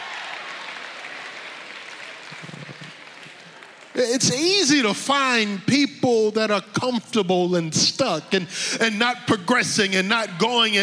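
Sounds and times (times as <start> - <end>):
church congregation clapping: 0.0 - 5.6
speech: 4.0 - 10.8.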